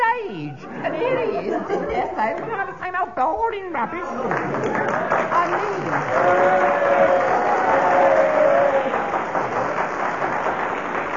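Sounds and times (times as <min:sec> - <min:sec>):
speech: 0:00.3 - 0:07.2
audience applause: 0:04.2 - 0:11.1.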